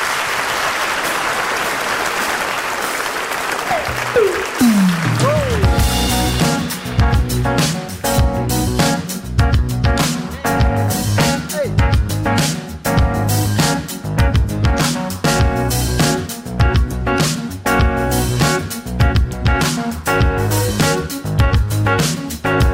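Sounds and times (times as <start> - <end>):
audience applause: 0.0 - 6.1
music: 1.0 - 22.7.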